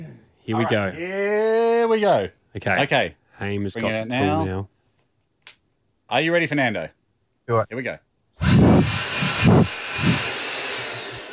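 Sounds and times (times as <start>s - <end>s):
speech: 0.5s - 4.7s, 6.1s - 8.1s
blower rushing air: 8.4s - 11.3s.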